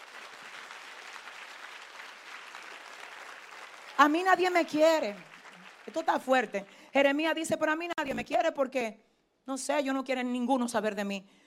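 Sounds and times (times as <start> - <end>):
audience applauding: 0.0 - 6.9
speech: 4.0 - 11.4.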